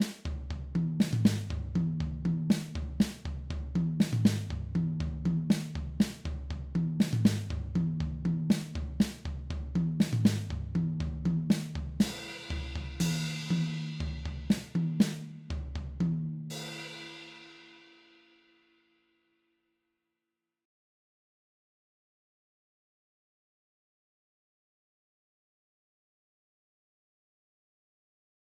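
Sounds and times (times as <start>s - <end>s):
drums: 0.0s - 18.4s.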